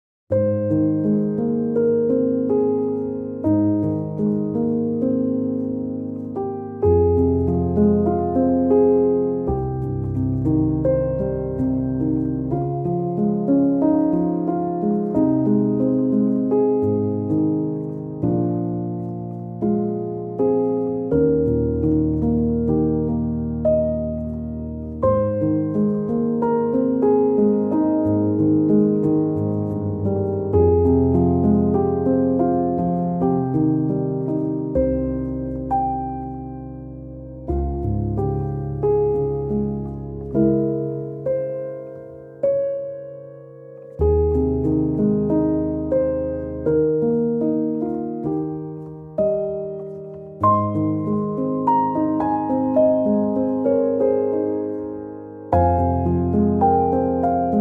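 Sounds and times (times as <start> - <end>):
calm nature song: 0.3 - 57.5.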